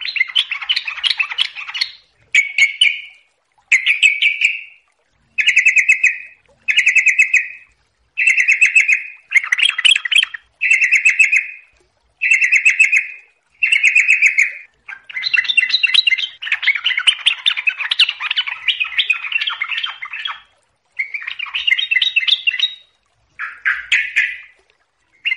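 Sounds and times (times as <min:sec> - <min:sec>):
yellow-vented bulbul song: 0:00.0 - 0:25.3.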